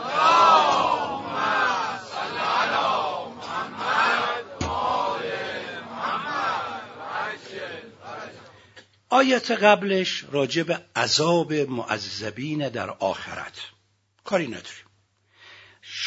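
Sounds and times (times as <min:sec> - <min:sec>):
audience chanting a salawat in unison during a religious lecture: 0:00.0 - 0:08.6
speech: 0:09.2 - 0:14.8.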